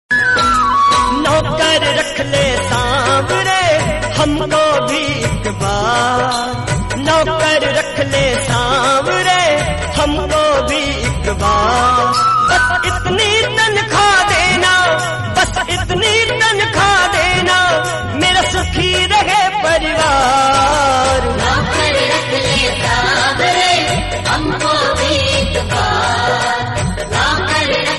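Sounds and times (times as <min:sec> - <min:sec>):
Hindi bhajan singing: 0:00.8 - 0:27.9.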